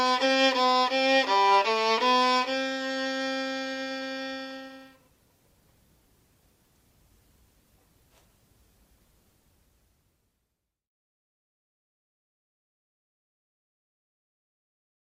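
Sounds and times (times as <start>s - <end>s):
violin etude allegro: 0.0s - 5.0s.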